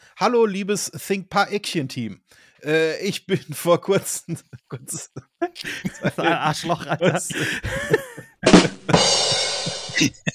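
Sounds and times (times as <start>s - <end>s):
speech: 0.2s - 8.2s, 10.0s - 10.3s
laughter: 3.4s - 10.3s
breathy rustling noise: 4.5s - 8.4s
person sneezing: 5.0s - 8.2s, 8.8s - 10.3s.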